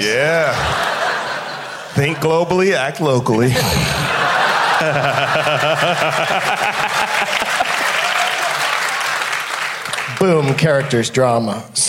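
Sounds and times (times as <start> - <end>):
speech: 0.0 - 0.9, 2.0 - 4.1, 4.8 - 6.9, 10.2 - 11.8
laughter: 0.3 - 2.4, 3.4 - 8.1
audience applause: 4.2 - 11.2.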